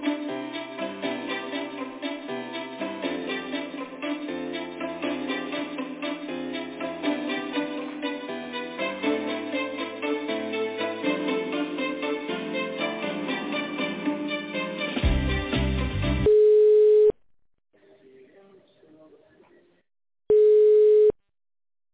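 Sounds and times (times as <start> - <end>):
telephone hold music during a call transfer: 0.0 - 16.3
telephone line beeps during a call transfer: 16.3 - 17.1, 20.3 - 21.2.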